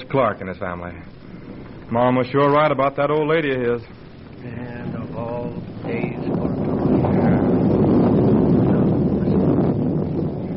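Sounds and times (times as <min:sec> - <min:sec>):
speech: 0:00.1 - 0:01.2, 0:01.9 - 0:04.7
thunder: 0:04.8 - 0:10.5.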